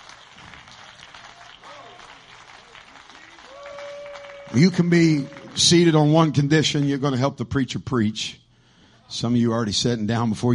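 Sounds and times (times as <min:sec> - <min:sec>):
audience hand clapping: 0:00.0 - 0:06.2
speech: 0:04.5 - 0:08.4, 0:09.1 - 0:10.5.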